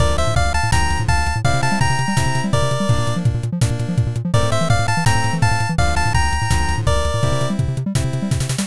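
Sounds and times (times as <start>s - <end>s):
background music: 0.0s - 8.6s.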